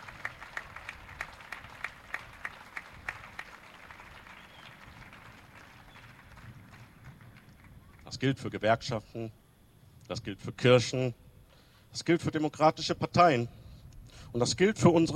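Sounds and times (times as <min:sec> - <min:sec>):
audience applause after a political speech: 0:00.0 - 0:08.1
speech: 0:08.2 - 0:09.4, 0:10.1 - 0:11.2, 0:11.9 - 0:15.1.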